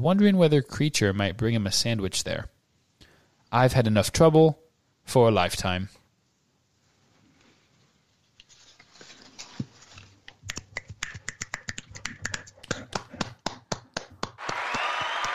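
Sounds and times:
speech: 0.0s - 2.6s, 3.5s - 6.0s
applause: 14.0s - 15.3s.

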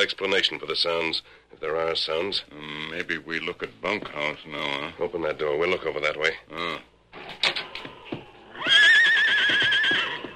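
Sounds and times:
speech: 0.0s - 7.5s
horse neighing: 8.4s - 10.3s.

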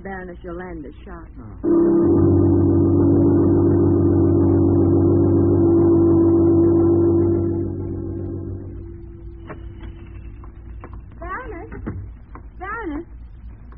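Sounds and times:
speech: 0.0s - 2.8s
car engine droning as the car drives off: 1.6s - 11.0s.

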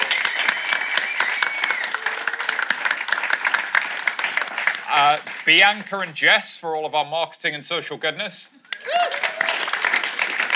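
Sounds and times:
audience applause: 0.0s - 6.0s, 8.7s - 10.5s
speech: 5.2s - 9.0s.

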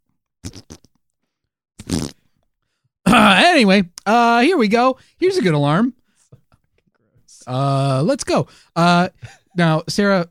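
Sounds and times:
fart: 0.4s - 1.0s, 1.8s - 2.3s
speech: 3.6s - 6.0s, 7.4s - 10.2s.

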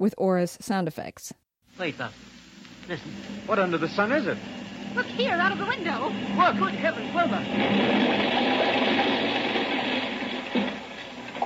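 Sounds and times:
speech: 0.0s - 8.8s
low droning hum: 1.7s - 11.4s
rocket ship jet sound effect: 3.2s - 11.4s.

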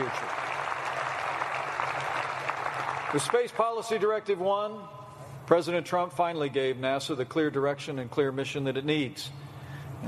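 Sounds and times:
audience applause: 0.0s - 3.9s
speech: 3.1s - 9.4s.

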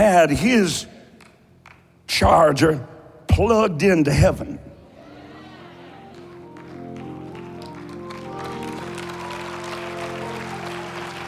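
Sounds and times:
speech: 0.1s - 1.0s, 2.1s - 4.7s
audience clapping: 5.9s - 11.2s.

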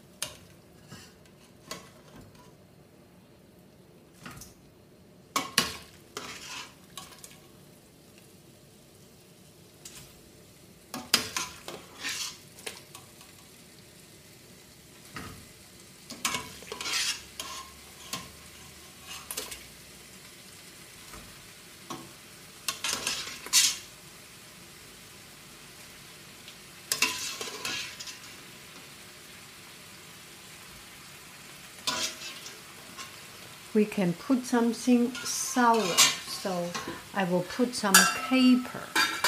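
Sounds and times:
chicken frying in a hot pan: 0.0s - 39.2s
utensil scraping and stirring against the pan: 5.4s - 7.4s, 11.0s - 13.0s, 16.1s - 19.7s, 22.7s - 23.9s, 26.9s - 28.4s, 31.8s - 33.3s, 35.0s - 37.1s, 37.9s - 39.2s
speech: 33.8s - 38.9s.

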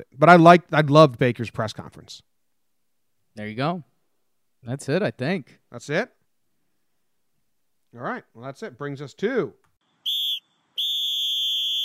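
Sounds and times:
speech: 0.0s - 2.3s, 3.4s - 3.9s, 4.6s - 6.2s, 7.9s - 9.6s
referee's whistle blown at halftime: 10.0s - 11.8s.

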